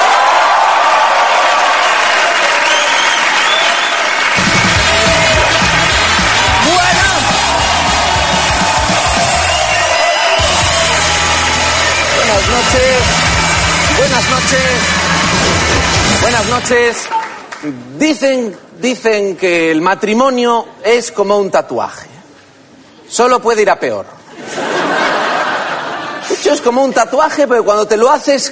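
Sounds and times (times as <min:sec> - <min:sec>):
audience applause: 0:00.0 - 0:17.7
speech: 0:14.2 - 0:22.1, 0:23.1 - 0:25.1, 0:26.4 - 0:28.5
laughter: 0:24.3 - 0:26.7.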